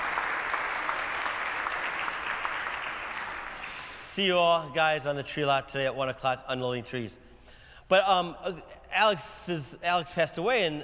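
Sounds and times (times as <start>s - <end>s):
crowd applauding: 0.0s - 4.1s
speech: 4.2s - 7.3s, 7.9s - 10.8s.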